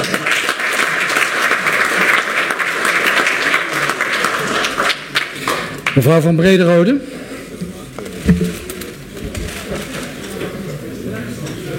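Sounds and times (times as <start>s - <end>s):
crowd applauding: 0.0s - 6.2s
speech: 6.0s - 7.1s, 8.2s - 8.5s.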